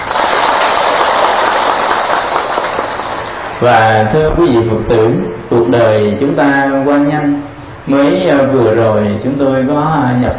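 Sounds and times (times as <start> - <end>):
applause: 0.0 - 3.4
speech: 3.6 - 10.3.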